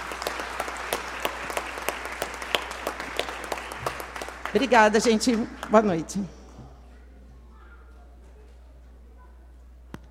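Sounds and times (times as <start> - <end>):
applause: 0.0 - 6.2
speech: 4.5 - 6.4.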